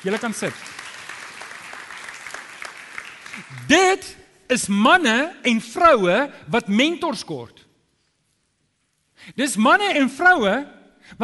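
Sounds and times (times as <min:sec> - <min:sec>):
speech: 0:00.0 - 0:00.8, 0:03.4 - 0:07.6, 0:09.2 - 0:11.2
audience applause: 0:00.0 - 0:03.7.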